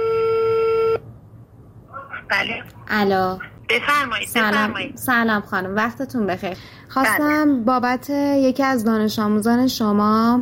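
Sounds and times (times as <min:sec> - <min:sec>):
telephone tone as a call is placed to a school principal: 0:00.0 - 0:01.0
speech: 0:02.3 - 0:10.4.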